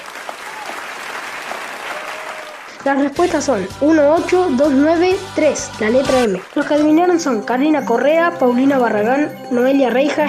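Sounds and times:
crowd applauding: 0.0 - 3.0, 6.1 - 7.1
speech: 2.8 - 10.2.

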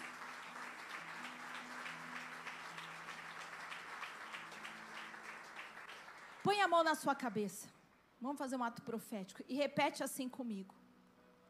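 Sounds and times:
audience applauding: 0.0 - 6.8
speech: 6.5 - 10.8.

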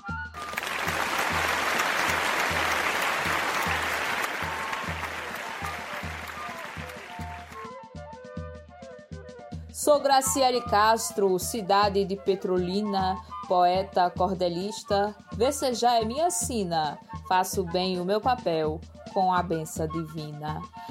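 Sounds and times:
audience applause: 0.4 - 7.7
speech: 9.9 - 20.9.

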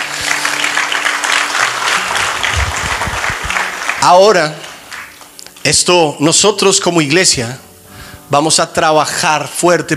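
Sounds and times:
audience applauding: 0.0 - 5.4
speech: 4.0 - 4.6, 5.6 - 7.7, 8.3 - 9.9.

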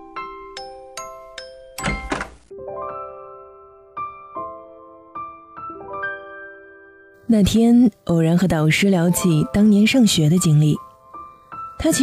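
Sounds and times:
tinkling chime melody: 0.0 - 2.0
door opening: 1.8 - 2.4
speech: 7.3 - 10.9, 11.8 - 12.0.

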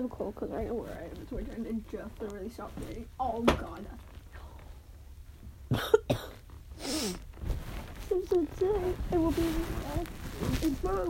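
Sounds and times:
speech: 0.0 - 4.1, 5.7 - 6.3, 8.1 - 11.0
low hum: 0.0 - 11.0
person coughing: 5.7 - 6.4.

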